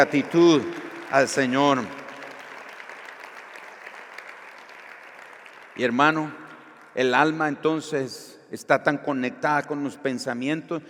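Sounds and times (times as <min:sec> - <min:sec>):
speech: 0:00.0 - 0:02.0, 0:05.8 - 0:06.4, 0:07.0 - 0:10.8
audience applause: 0:00.0 - 0:05.9.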